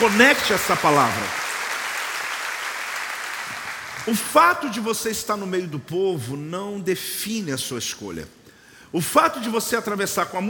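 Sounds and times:
speech: 0.0 - 1.4, 4.0 - 10.4
crowd applauding: 0.0 - 4.4.

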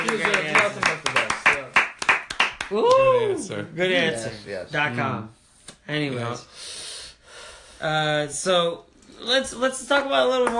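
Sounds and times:
applause: 0.0 - 3.0
speech: 2.7 - 6.8, 7.8 - 10.5.

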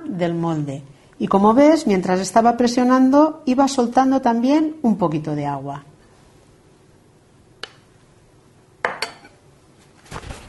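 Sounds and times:
speech: 0.2 - 5.9
plate set down in a kitchen: 8.8 - 9.4.

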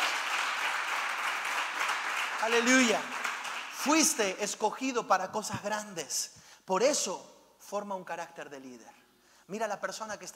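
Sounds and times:
crowd applauding: 0.0 - 4.2
speech: 2.4 - 3.2, 3.8 - 10.3.

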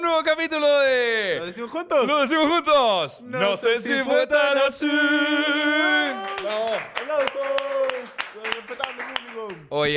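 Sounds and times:
speech: 0.2 - 9.9
audience applause: 5.9 - 9.6.

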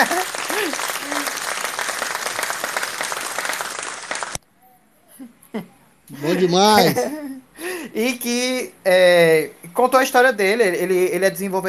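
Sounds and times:
person laughing: 0.0 - 1.3, 5.1 - 7.4
crowd applause: 0.0 - 4.4
speech: 5.6 - 7.2, 8.0 - 11.6.

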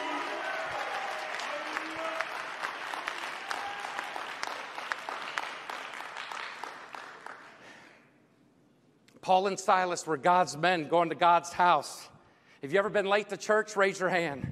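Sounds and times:
audience round of applause: 0.0 - 7.6
speech: 9.3 - 14.5.

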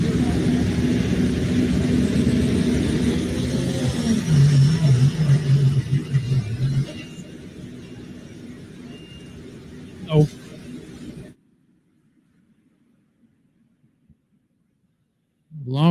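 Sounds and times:
pulling truck Borrowed Time revving its engine at a truck pull: 0.0 - 11.3.

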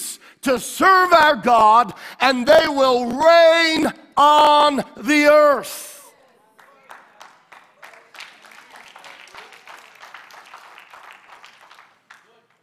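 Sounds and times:
speech: 0.4 - 5.9
audience clapping: 6.2 - 12.6.

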